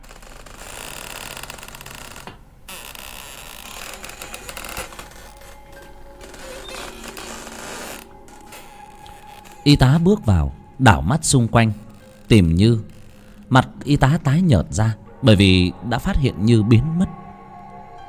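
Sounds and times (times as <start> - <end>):
door creaking open heavily: 0.0 - 14.4
speech: 9.7 - 12.9, 13.5 - 17.2.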